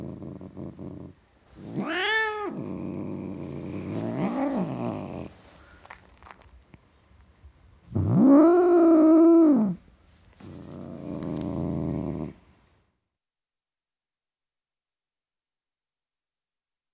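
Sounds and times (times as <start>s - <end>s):
male tom cat growling: 0.0s - 6.4s, 7.9s - 9.8s, 10.4s - 12.4s.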